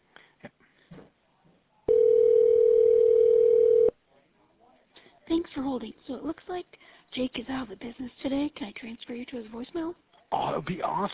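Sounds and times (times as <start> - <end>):
telephone line tone during a call transfer at a jewelry store: 1.9 - 4.0
speech: 5.8 - 11.1.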